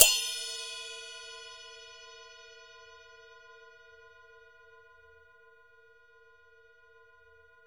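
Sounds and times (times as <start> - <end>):
Chinese cymbal: 0.0 - 5.0.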